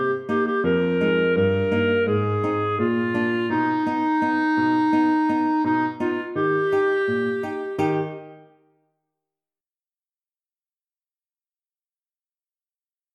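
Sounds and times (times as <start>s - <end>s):
clarinet melody: 0.0s - 8.6s
guitar: 0.0s - 8.6s.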